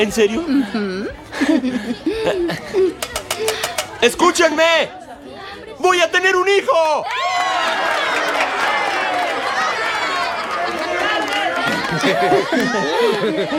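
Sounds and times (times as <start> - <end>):
speech: 0.0 - 5.0, 5.8 - 7.4, 11.9 - 13.5
laughter: 0.4 - 3.8, 7.6 - 13.5
crowd ovation: 7.1 - 13.5.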